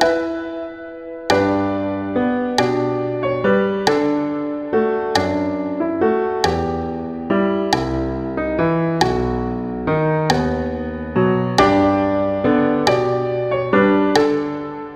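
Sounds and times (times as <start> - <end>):
Christmas carol music: 0.0 - 14.9.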